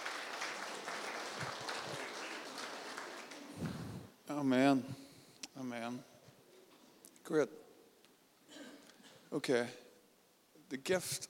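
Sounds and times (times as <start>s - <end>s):
audience applause: 0.0s - 4.0s
speech: 4.3s - 5.0s, 5.6s - 6.1s, 7.3s - 7.6s, 9.3s - 9.8s, 10.7s - 11.2s.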